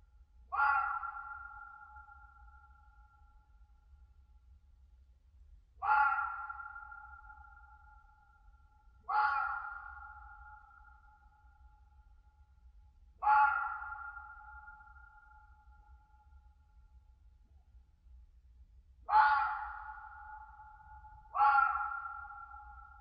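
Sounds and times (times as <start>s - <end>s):
red fox screaming in winter in a European mountain forest: 0.5s - 1.4s, 5.8s - 7.0s, 9.1s - 10.0s, 13.2s - 14.4s, 19.1s - 20.1s, 21.3s - 22.7s.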